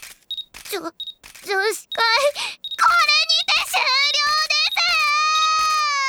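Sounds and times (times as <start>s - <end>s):
camera shutter click: 0.0s - 5.9s
speech: 0.7s - 2.6s.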